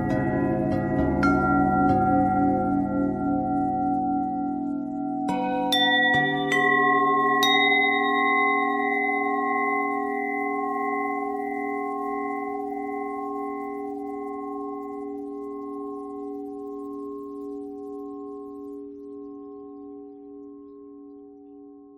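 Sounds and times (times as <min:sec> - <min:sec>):
bells: 0:00.0 - 0:21.9.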